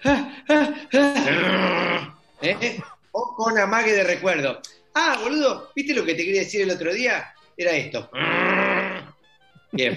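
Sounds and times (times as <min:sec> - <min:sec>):
person grunting with a feigned sneeze: 0:01.1 - 0:02.9, 0:08.2 - 0:09.1
speech: 0:03.6 - 0:08.6, 0:09.7 - 0:09.9.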